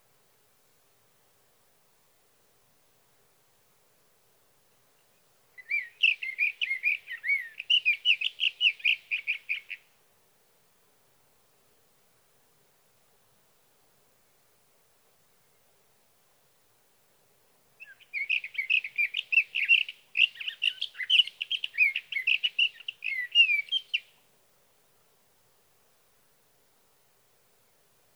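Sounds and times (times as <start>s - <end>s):
sage thrasher singing warbled song: 5.1s - 9.8s, 17.8s - 24.2s.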